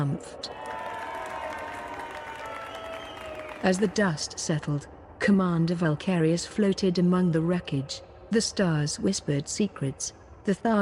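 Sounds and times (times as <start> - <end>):
speech: 0.1 - 0.6, 3.6 - 10.8
crowd of astrogazers applauding: 0.5 - 4.3.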